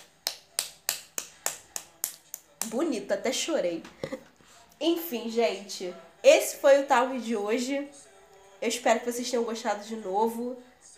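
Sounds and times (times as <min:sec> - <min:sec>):
clapping: 0:00.0 - 0:02.8
speech: 0:02.6 - 0:10.7.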